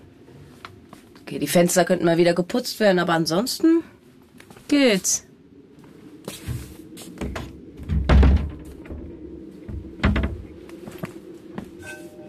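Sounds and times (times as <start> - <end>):
speech: 1.3 - 4.0, 4.7 - 5.3
door being closed: 7.2 - 9.1, 9.7 - 10.6.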